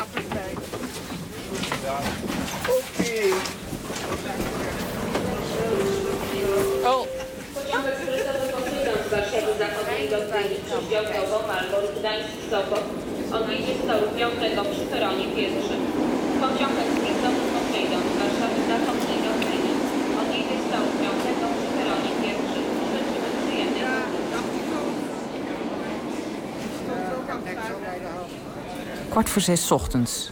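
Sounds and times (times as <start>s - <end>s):
train arriving in Warsaw, Poland, rumbling and rushing: 0.0s - 28.6s
speech: 10.8s - 18.1s, 29.2s - 30.3s.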